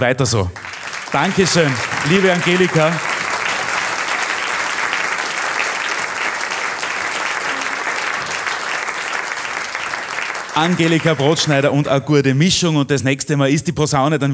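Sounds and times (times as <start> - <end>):
speech: 0.0 - 3.1, 10.6 - 14.3
audience applause: 0.3 - 11.7.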